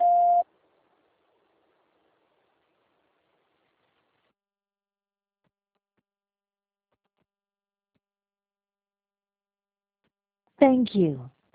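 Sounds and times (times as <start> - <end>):
voicemail tone beep: 0.0 - 0.4
speech: 10.6 - 11.3.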